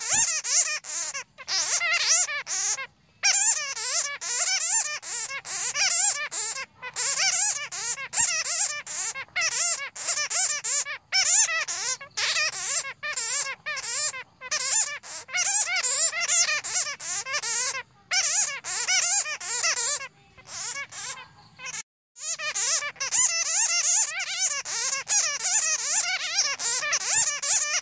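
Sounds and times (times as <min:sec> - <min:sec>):
bat squeaking: 0:00.0 - 0:27.8.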